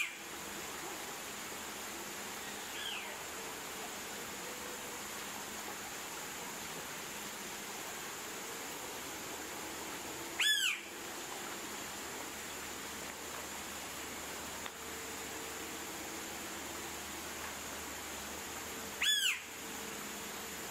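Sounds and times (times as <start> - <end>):
faint background hiss: 0.0 - 20.7
blue-winged pitta whistled call: 10.4 - 10.9, 19.0 - 19.4.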